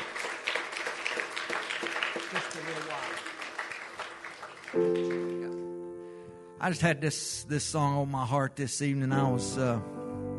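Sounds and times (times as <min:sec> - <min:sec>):
audience hand clapping: 0:00.0 - 0:05.7
speech: 0:06.6 - 0:10.0.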